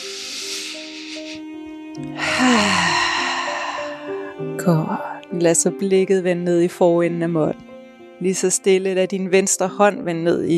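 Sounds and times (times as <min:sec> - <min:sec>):
deep slow breath during a yoga session: 0:00.0 - 0:01.4, 0:02.2 - 0:04.5
quiet sustained music tones: 0:00.0 - 0:10.5
speech: 0:02.0 - 0:02.6, 0:04.6 - 0:10.5.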